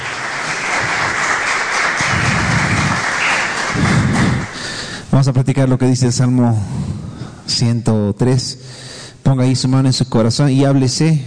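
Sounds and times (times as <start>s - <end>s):
audience applauding: 0.0s - 4.9s
speech: 5.2s - 11.2s.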